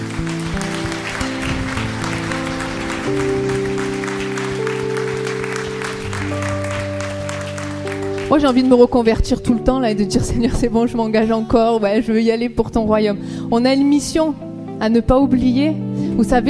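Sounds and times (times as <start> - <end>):
church congregation applauding during a worship service: 0.0 - 9.6
sustained keyboard chords: 0.0 - 16.4
speech: 3.1 - 3.3, 8.3 - 16.4.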